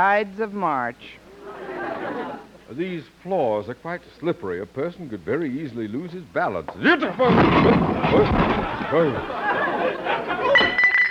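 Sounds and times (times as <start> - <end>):
speech: 0.0 - 1.2, 2.1 - 10.1
laughter: 1.3 - 2.7, 7.5 - 10.9
clinking clattering debris: 6.9 - 9.3, 10.4 - 11.0
heavy statue toppling and crashing: 6.9 - 9.7.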